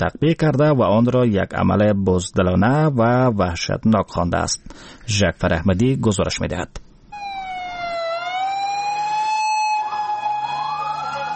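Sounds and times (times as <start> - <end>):
speech: 0.0 - 6.8
ambulance sirens wailing: 7.2 - 11.3.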